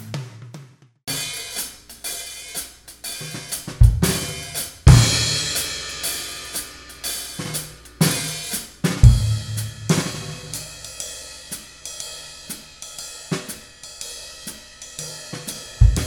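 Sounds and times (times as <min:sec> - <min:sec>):
jazz music: 0:03.8 - 0:11.0, 0:15.8 - 0:16.0.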